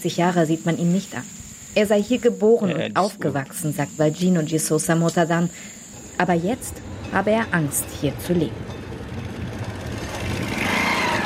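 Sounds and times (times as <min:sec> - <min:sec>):
speech: 0:00.0 - 0:08.8
motorcycles passing slowly: 0:05.3 - 0:11.2.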